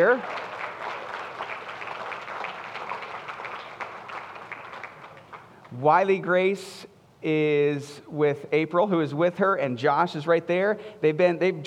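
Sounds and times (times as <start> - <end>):
speech: 0.0 - 0.4, 5.7 - 11.6
audience applause: 0.0 - 5.5.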